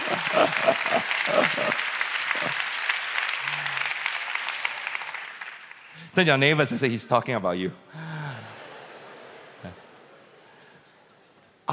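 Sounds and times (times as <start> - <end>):
laughter: 0.0 - 2.6, 8.1 - 10.4
crowd clapping: 0.0 - 6.1
speech: 0.1 - 1.8, 6.2 - 8.1.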